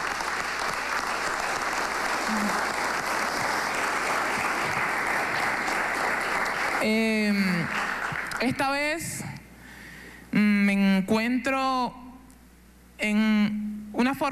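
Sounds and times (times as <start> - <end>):
audience applause: 0.0 - 8.4
speech: 6.8 - 7.8, 8.4 - 9.1, 10.3 - 12.0, 13.0 - 14.3.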